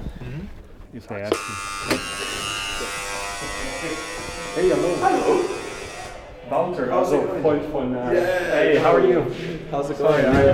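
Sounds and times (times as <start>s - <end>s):
speech: 0.9s - 5.6s, 6.5s - 10.5s
doorbell buzzer ringing: 1.3s - 6.2s.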